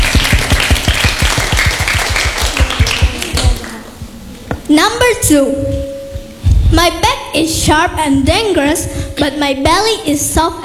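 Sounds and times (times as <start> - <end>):
audience applause: 0.0 - 3.9
speech: 4.7 - 5.8, 6.8 - 10.6.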